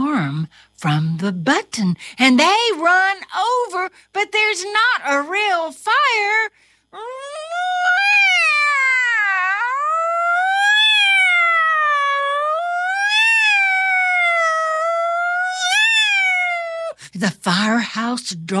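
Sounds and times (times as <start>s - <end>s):
speech: 0.5s - 8.2s, 17.2s - 18.5s
cat yowling meow: 7.0s - 17.0s.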